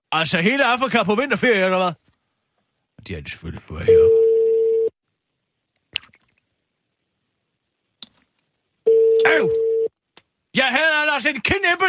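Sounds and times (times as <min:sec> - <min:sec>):
speech: 0:00.1 - 0:02.0, 0:03.0 - 0:04.2, 0:09.2 - 0:09.7, 0:10.6 - 0:11.8
steady telephone tone: 0:03.9 - 0:04.9, 0:08.9 - 0:09.9.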